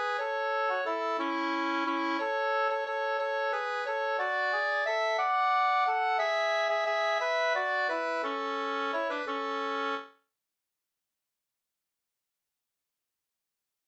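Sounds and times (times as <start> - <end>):
folk dance march in A major: 0.0 - 10.1.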